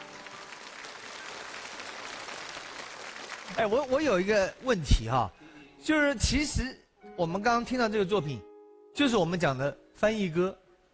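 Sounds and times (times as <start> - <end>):
audience applause from a large crowd: 0.0 - 4.4
speech: 3.5 - 10.6.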